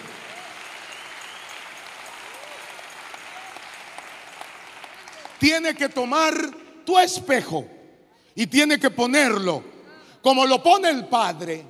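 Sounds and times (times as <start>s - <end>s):
audience applause: 0.0s - 5.6s
speech: 5.4s - 7.8s, 8.4s - 11.6s.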